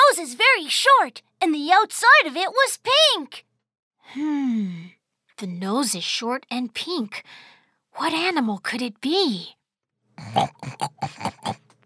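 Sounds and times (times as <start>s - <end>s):
speech: 0.2s - 3.5s, 4.1s - 9.6s, 10.2s - 11.6s
pig oinking through a walkie-talkie: 10.2s - 11.6s.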